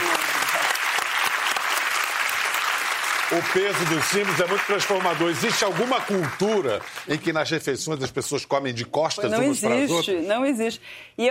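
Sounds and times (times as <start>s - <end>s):
applause: 0.0s - 7.4s
speech: 3.3s - 11.2s.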